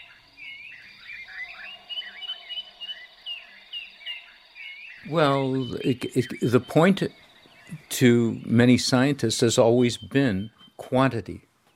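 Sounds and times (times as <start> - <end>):
steady high insect drone in a forest: 0.0 - 5.7
chorus of birds chirping in a forest: 0.0 - 11.7
long echoing calls of baboons in a forest: 1.1 - 4.4
speech: 5.1 - 7.2, 7.9 - 11.5.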